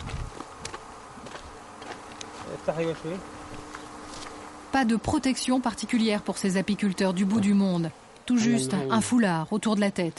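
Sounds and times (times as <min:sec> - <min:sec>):
honeybees buzzing around hives in the Wadi Doan valley: 0:00.0 - 0:10.1
speech: 0:02.6 - 0:03.4, 0:04.7 - 0:10.1.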